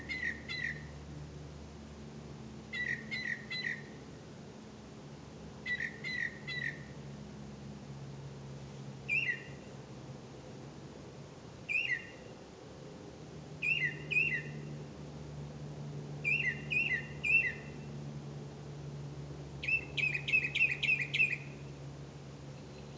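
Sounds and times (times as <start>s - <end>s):
bird calling: 0.0s - 1.0s, 2.7s - 4.0s, 5.6s - 7.0s, 9.1s - 9.7s, 11.7s - 12.4s, 13.6s - 14.8s, 16.2s - 17.9s, 19.6s - 21.8s, 22.5s - 22.9s
low hum: 0.0s - 22.9s.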